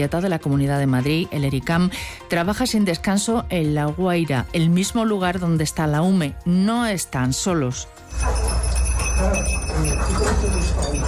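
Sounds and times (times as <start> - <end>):
speech: 0.0 - 8.5, 9.2 - 11.0
bells on rescue dogs searching rubble: 8.1 - 11.0
indistinct voices murmuring: 8.1 - 11.0.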